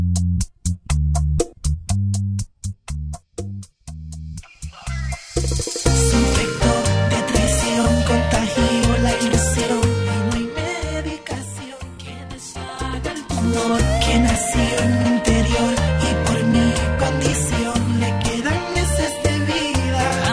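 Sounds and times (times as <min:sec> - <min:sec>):
music intro and verse at 121 BPM: 0:00.1 - 0:20.3.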